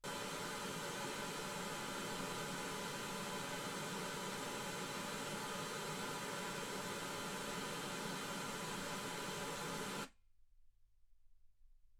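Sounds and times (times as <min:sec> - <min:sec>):
white gaussian noise at 48kHz: 0:00.0 - 0:10.1.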